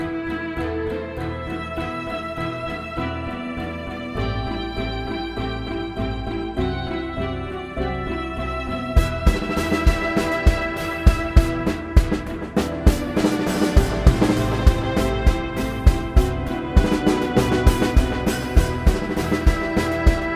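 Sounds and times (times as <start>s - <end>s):
pizzicato strings: 0.0s - 20.3s
drums: 9.0s - 20.3s.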